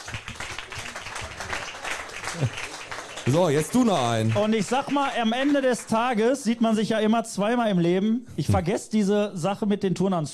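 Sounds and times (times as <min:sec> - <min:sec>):
audience applause at a live event: 0:00.0 - 0:06.5
speech: 0:02.4 - 0:10.3.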